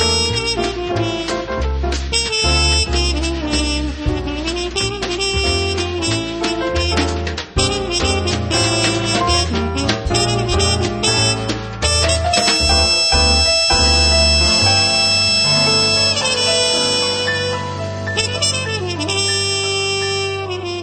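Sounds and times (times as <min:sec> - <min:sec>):
jazz band: 0:00.0 - 0:20.8.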